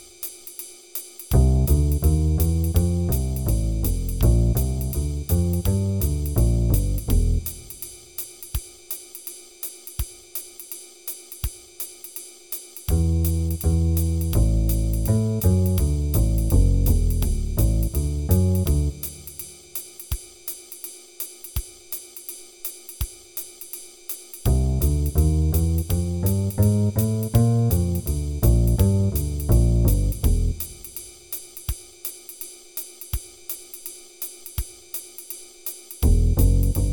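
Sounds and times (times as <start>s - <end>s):
jazz improvisation play-along band playing: 1.4s - 7.5s, 12.9s - 19.4s, 24.5s - 30.6s
jazz bass solo: 1.4s - 7.8s, 12.9s - 19.3s, 24.5s - 30.9s, 36.0s - 36.9s.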